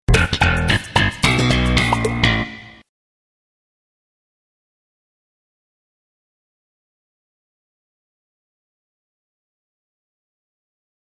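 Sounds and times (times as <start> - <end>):
sitcom bass riff: 0.1 - 2.8.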